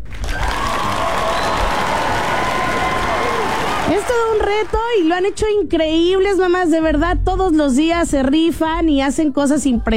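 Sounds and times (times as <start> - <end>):
applause, standing ovation: 0.0 - 5.6
speech: 4.0 - 9.9.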